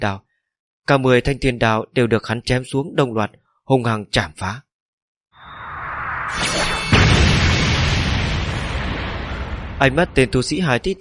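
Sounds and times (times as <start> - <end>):
speech: 0.0 - 0.2, 0.8 - 4.7, 9.8 - 11.0
explosion boom with crackling debris: 5.4 - 11.0.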